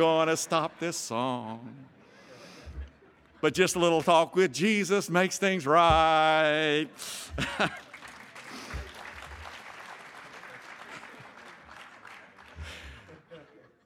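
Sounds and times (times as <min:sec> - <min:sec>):
speech: 0:00.0 - 0:01.9, 0:03.4 - 0:07.8
laughter: 0:00.0 - 0:13.8
audience applause: 0:07.3 - 0:13.3.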